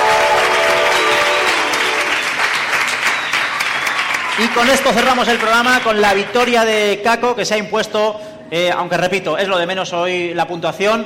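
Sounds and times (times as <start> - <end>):
applause: 0.0 - 6.6
speech: 4.4 - 11.0.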